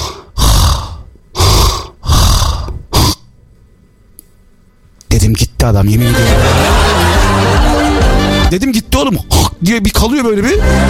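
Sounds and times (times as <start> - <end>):
person imitating snoring: 0.0 - 3.2
speech: 5.3 - 6.8, 8.5 - 10.8
laughter: 6.0 - 8.6.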